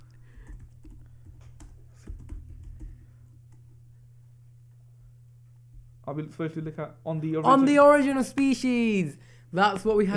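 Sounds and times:
low hum: 0:00.0 - 0:08.2
typing on a computer keyboard: 0:00.4 - 0:03.0
speech: 0:06.1 - 0:10.1.

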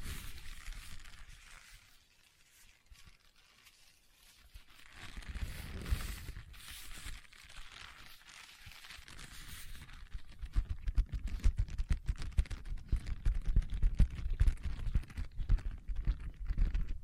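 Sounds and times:
scratching on leather: 0:00.0 - 0:16.8.

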